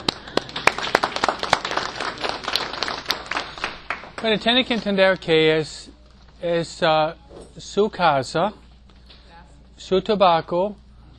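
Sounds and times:
applause: 0.0s - 5.3s
speech: 1.3s - 1.6s, 4.2s - 5.8s, 6.4s - 8.6s, 9.8s - 10.8s.

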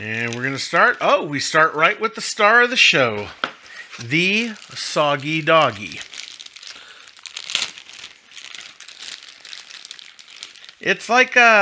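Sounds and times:
plastic packaging crinkling as it is opened: 0.0s - 0.6s, 3.3s - 11.6s
speech: 0.0s - 6.1s, 10.8s - 11.6s.

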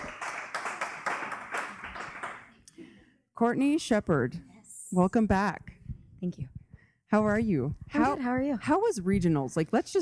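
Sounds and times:
audience applause: 0.0s - 2.5s
speech: 3.4s - 9.9s.

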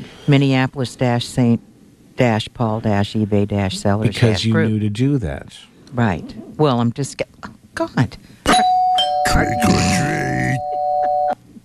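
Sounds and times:
speech: 0.3s - 10.7s
electronic doorbell chime: 8.6s - 11.4s.

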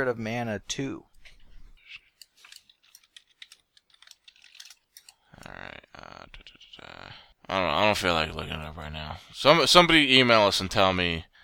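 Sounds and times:
speech: 0.0s - 1.1s, 5.4s - 11.3s
typing on a computer keyboard: 2.4s - 5.1s.

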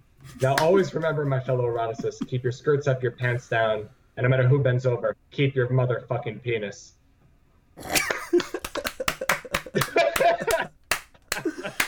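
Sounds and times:
speech: 0.3s - 7.0s, 7.8s - 8.5s
laughter and voices: 0.7s - 2.7s, 7.8s - 11.8s
one person clapping: 8.4s - 11.8s.

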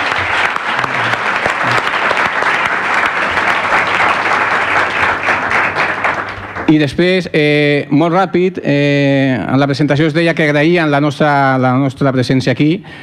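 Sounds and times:
audience applause: 0.0s - 7.0s
speech: 6.7s - 13.0s.

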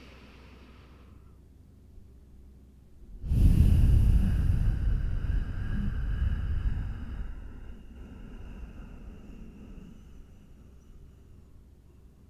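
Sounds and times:
long audible exhale through a slightly constricted throat: 3.2s - 11.6s.

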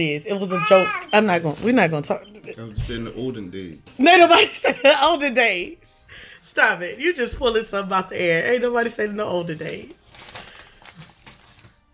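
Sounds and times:
speech: 0.0s - 10.0s
child rustling and playing with paper: 9.6s - 11.9s.

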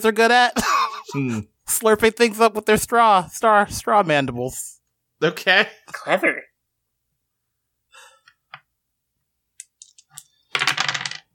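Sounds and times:
speech: 0.0s - 6.5s
dice clattering on a table: 9.6s - 11.3s.

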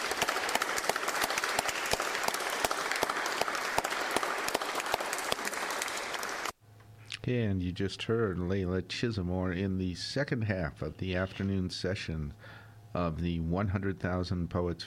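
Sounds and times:
audience applause for poets: 0.0s - 6.6s
speech: 7.3s - 14.8s.

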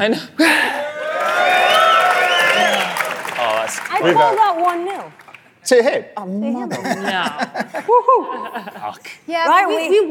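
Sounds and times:
speech: 0.0s - 0.6s, 3.7s - 10.0s
debate audience cheering to vote: 0.7s - 5.1s.

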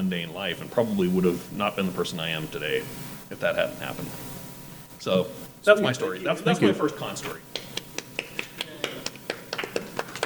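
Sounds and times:
speech: 0.0s - 4.3s, 5.0s - 7.5s
audience clapping: 7.5s - 10.2s.

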